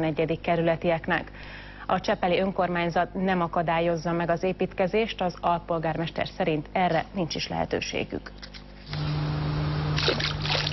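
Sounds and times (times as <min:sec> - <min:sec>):
speech: 0:00.0 - 0:09.1, 0:10.0 - 0:10.6
stone thrown into water splashing on Csepel Kis-Duna bank: 0:10.0 - 0:10.7.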